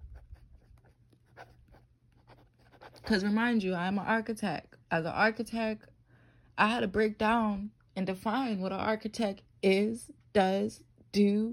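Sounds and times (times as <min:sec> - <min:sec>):
writing scratching as something is jotted down: 0:00.0 - 0:03.2
speech: 0:03.1 - 0:05.9, 0:06.6 - 0:11.5.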